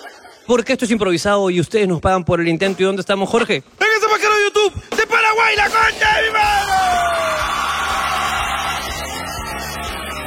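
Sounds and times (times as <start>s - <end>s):
speech: 0.5s - 7.4s
crowd yelling and whooping: 5.7s - 10.2s
audience applause: 6.9s - 10.2s.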